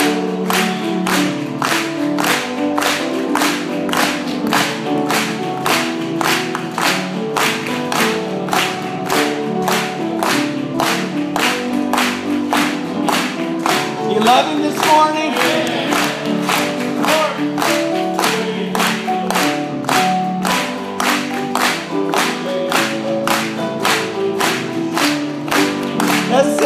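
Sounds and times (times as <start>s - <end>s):
audience clapping along to a song: 0.0s - 26.6s
sustained singing or music with strong harmonic tones: 13.7s - 19.7s, 25.6s - 26.6s.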